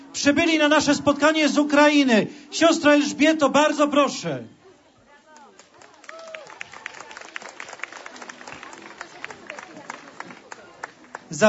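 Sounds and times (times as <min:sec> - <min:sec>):
speech: 0:00.2 - 0:04.6
audience applause: 0:05.6 - 0:11.4.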